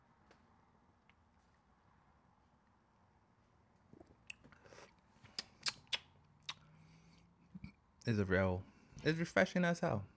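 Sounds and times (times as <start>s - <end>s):
slurping sips from a can of Tropical Fantasy champagne soda: 4.3s - 6.7s
speech: 8.1s - 10.1s.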